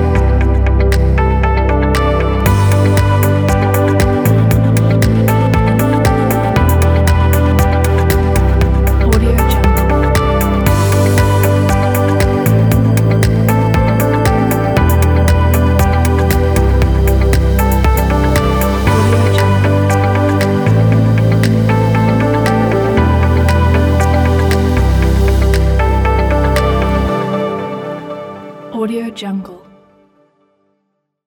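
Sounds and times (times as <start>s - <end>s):
inspiring background piano music: 0.0s - 28.7s.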